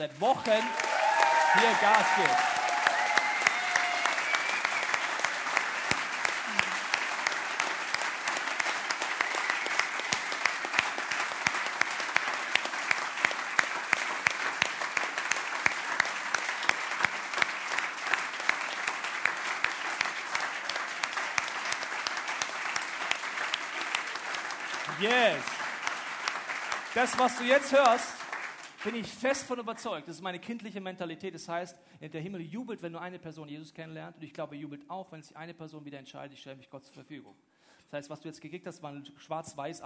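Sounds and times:
speech: 0:00.0 - 0:00.8, 0:01.5 - 0:02.6, 0:27.0 - 0:28.2, 0:28.8 - 0:39.8
audience applause: 0:00.0 - 0:29.6
whoops and calls: 0:00.5 - 0:05.0.

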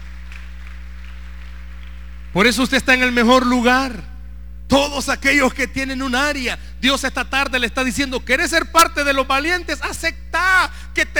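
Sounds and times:
audience applause: 0:00.0 - 0:02.2
speech: 0:02.3 - 0:04.1, 0:04.7 - 0:11.1.

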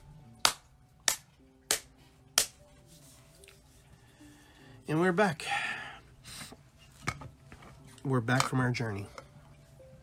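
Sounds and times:
hands clapping: 0:00.4 - 0:02.6
speech: 0:04.9 - 0:05.8, 0:08.0 - 0:09.2.

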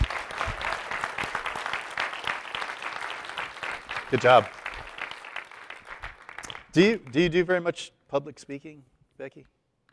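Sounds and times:
crowd clapping: 0:00.0 - 0:07.6
speech: 0:04.1 - 0:04.6, 0:06.8 - 0:09.6.

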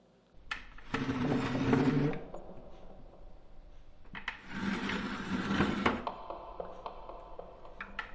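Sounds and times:
chair dragged across hard wooden floor: 0:00.8 - 0:02.3, 0:04.4 - 0:06.1.

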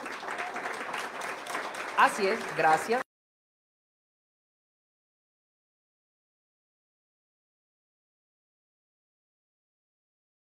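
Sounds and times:
applause: 0:00.0 - 0:03.1
speech: 0:02.0 - 0:03.0.

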